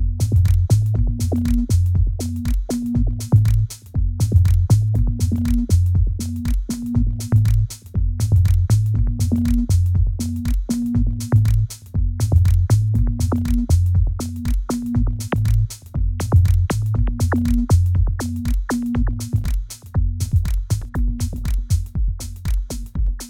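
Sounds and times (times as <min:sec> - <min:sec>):
live drum loop: 0:00.0 - 0:23.2.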